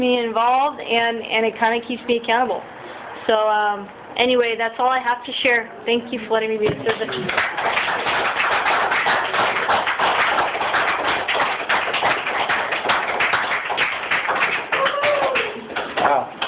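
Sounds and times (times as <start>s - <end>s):
speech: 0.0s - 8.8s
audience applause: 6.9s - 16.4s.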